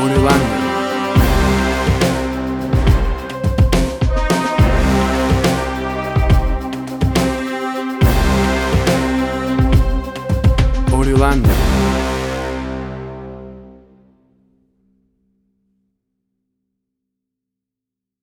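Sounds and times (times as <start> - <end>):
drumcore music: 0.0 - 13.0.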